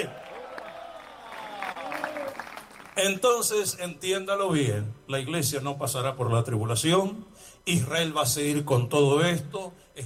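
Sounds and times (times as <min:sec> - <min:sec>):
audience applauding: 0:00.0 - 0:03.0
speech: 0:03.0 - 0:10.0.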